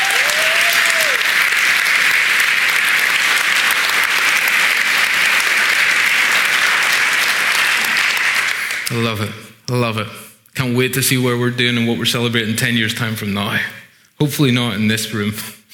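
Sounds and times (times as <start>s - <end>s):
audience applause: 0.0s - 8.9s
speech: 8.9s - 15.7s.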